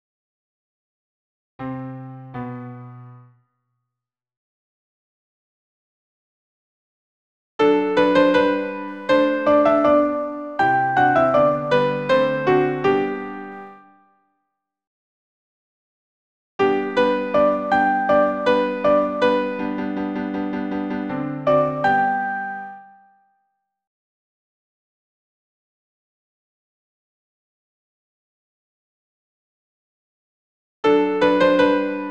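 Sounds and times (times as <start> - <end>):
soprano piano accompaniment: 1.6 - 3.4, 7.6 - 14.0, 16.6 - 23.0, 30.9 - 32.0.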